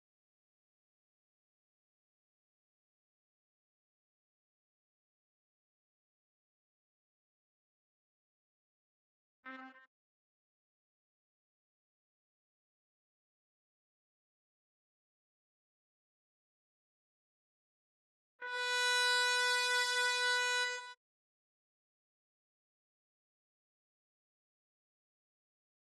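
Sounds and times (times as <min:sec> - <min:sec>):
trumpet: 0:09.4 - 0:09.9, 0:18.4 - 0:21.0.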